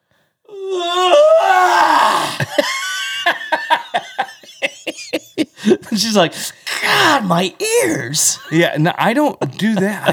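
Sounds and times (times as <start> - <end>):
loud growling yawn: 0.5 - 2.6
laughter: 2.2 - 10.1
speech: 6.1 - 10.1.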